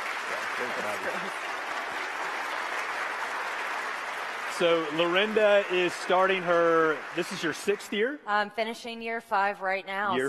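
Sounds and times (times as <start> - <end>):
audience applauding to welcome a guest onto a stage: 0.0 - 8.2
speech: 0.6 - 1.7, 4.6 - 10.2.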